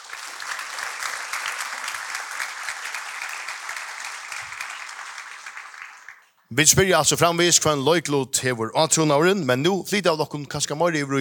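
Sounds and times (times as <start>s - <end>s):
audience applause: 0.0s - 6.5s
speech: 6.5s - 11.2s.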